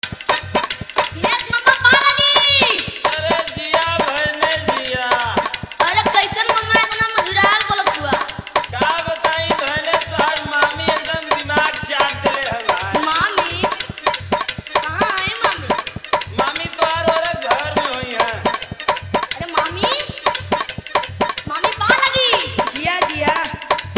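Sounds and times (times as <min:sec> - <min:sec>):
Holi dance bass music mix: 0:00.0 - 0:23.9.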